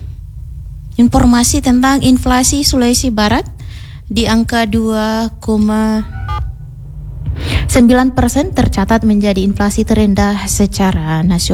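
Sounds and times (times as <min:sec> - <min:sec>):
low rumble: 0:00.0 - 0:11.5
speech: 0:01.0 - 0:06.2, 0:07.7 - 0:11.5
telephone dialing tones while calling a colleague: 0:06.0 - 0:06.6.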